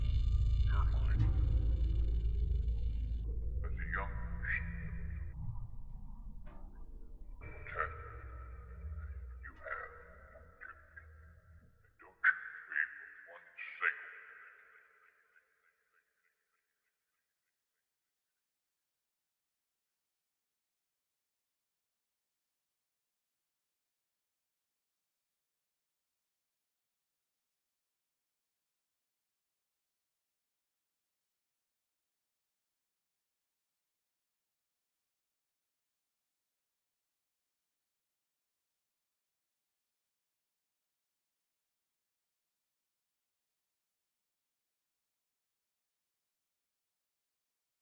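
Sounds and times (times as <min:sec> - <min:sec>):
constant soundscape: 0:00.0 - 0:11.3.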